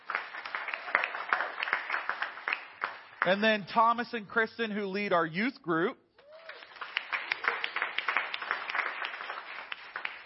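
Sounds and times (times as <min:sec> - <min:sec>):
crowd applauding: 0:00.0 - 0:03.9, 0:06.2 - 0:10.2
speech: 0:03.2 - 0:06.0.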